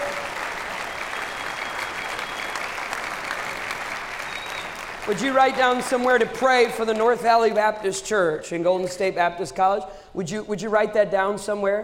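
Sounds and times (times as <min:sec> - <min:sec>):
audience applause: 0:00.0 - 0:07.2
speech: 0:05.1 - 0:11.8.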